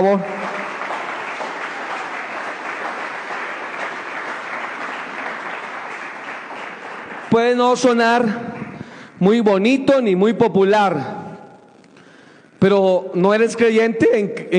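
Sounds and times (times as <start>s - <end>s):
speech: 0.0s - 0.5s, 7.3s - 8.5s, 9.2s - 11.2s, 12.6s - 14.5s
audience applauding: 0.0s - 9.1s.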